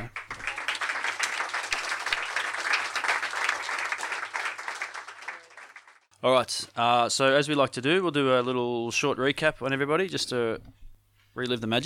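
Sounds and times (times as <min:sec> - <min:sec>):
crowd applauding: 0:00.0 - 0:06.1
speech: 0:06.2 - 0:10.8, 0:11.4 - 0:11.8.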